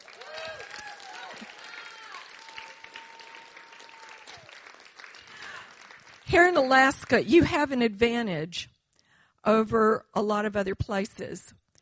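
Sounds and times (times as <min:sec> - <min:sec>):
audience clapping: 0:00.0 - 0:07.3
whistles and cheers: 0:00.1 - 0:04.7
speech: 0:06.3 - 0:08.8, 0:09.4 - 0:11.6.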